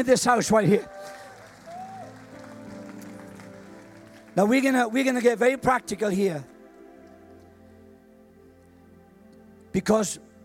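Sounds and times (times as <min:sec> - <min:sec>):
speech: 0:00.0 - 0:01.2, 0:04.4 - 0:06.5, 0:09.8 - 0:10.3
audience clapping: 0:00.8 - 0:05.3.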